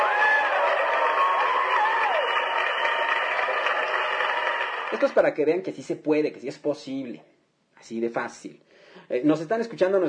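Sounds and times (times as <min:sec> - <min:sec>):
applause: 0:00.0 - 0:05.4
speech: 0:05.0 - 0:10.0.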